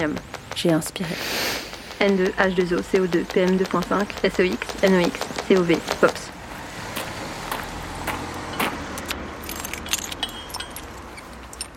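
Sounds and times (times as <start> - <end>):
speech: 0.0 - 1.4, 2.0 - 6.3
keys jangling: 8.5 - 11.7.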